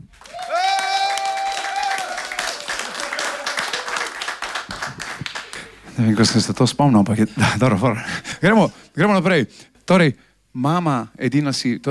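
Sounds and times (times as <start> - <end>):
audience applause for the band: 0.1 - 5.8
speech: 6.0 - 11.8.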